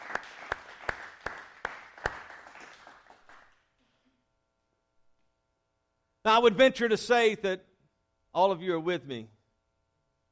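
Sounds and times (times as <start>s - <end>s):
audience hand clapping: 0.0s - 3.8s
speech: 6.3s - 7.7s, 8.4s - 9.4s.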